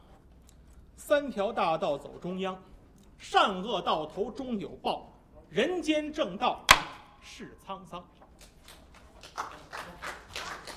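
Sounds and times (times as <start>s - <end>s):
speech: 1.1s - 8.2s
audience applause: 9.2s - 10.7s.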